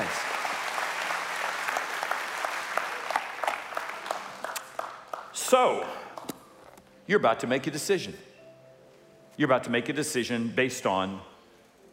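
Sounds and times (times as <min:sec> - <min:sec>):
round of applause: 0:00.0 - 0:05.5
speech: 0:05.5 - 0:06.0, 0:07.1 - 0:08.3, 0:09.4 - 0:11.3.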